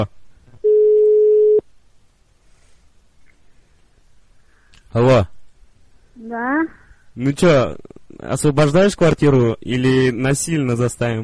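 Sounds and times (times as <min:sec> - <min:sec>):
outgoing telephone call ringing tone: 0:00.6 - 0:01.6
speech: 0:04.9 - 0:05.3, 0:06.2 - 0:11.2.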